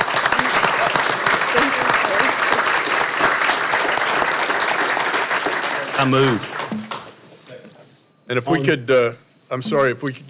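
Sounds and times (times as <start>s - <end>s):
group applause: 0.0s - 7.2s
speech: 6.0s - 6.8s, 8.3s - 10.2s.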